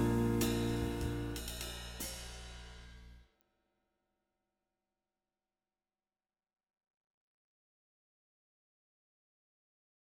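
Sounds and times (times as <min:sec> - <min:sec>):
jazz etude backing track: 0:00.0 - 0:03.1.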